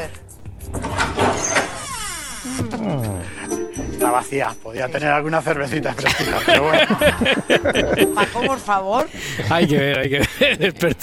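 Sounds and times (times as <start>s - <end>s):
squeaky refrigerator door creaking open: 0.7s - 3.0s
speech: 2.8s - 11.0s
laughter: 5.9s - 11.0s.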